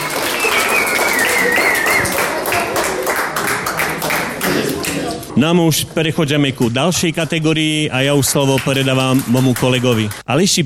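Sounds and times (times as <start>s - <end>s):
audience applause: 0.0s - 5.3s, 8.4s - 10.2s
thin high whistle: 0.2s - 2.2s
speech: 5.4s - 10.6s.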